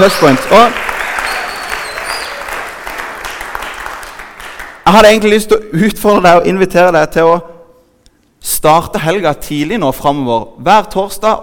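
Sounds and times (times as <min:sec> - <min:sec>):
speech: 0:00.0 - 0:00.9, 0:04.8 - 0:07.5, 0:08.4 - 0:11.4
steady applause from an audience: 0:00.0 - 0:04.8
faint whistles: 0:01.1 - 0:02.6.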